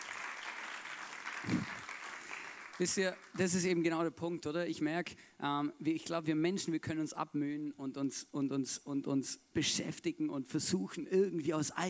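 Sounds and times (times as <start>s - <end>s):
audience applause: 0.0s - 3.4s
speech: 2.8s - 11.8s.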